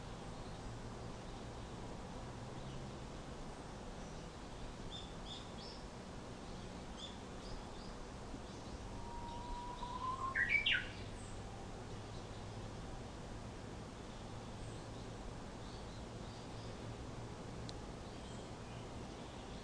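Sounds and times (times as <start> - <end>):
Japanese bush warbler song: 0.0 - 19.6.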